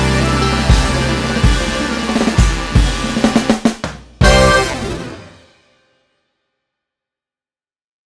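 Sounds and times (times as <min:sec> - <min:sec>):
blues music: 0:00.0 - 0:05.5.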